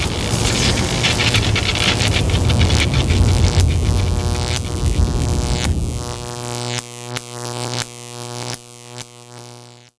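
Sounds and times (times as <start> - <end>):
lightning strike: 0.0 - 7.0.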